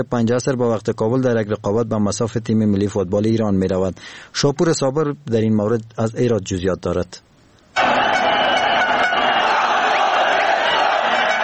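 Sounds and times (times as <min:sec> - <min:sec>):
speech: 0:00.0 - 0:07.3
thousands of football fans cheering: 0:07.8 - 0:11.4.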